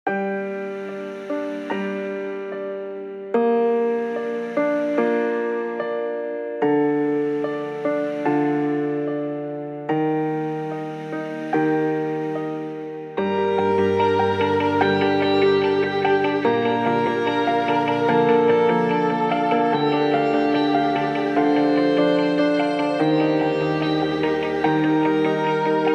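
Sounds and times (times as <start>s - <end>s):
piano: 0.1s - 25.9s.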